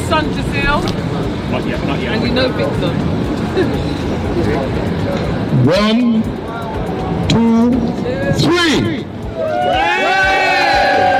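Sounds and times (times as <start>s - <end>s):
speech: 0.1s - 6.5s, 7.3s - 9.8s
crowd shouting and cheering: 4.6s - 11.1s.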